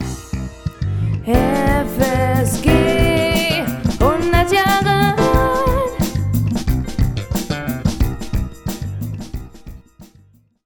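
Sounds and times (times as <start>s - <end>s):
jingle: 0.2s - 10.3s.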